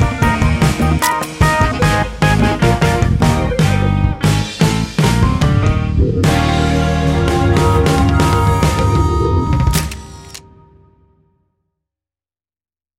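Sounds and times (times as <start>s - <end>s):
backing music: 0.0s - 11.1s
photo camera shutter click: 9.7s - 10.5s.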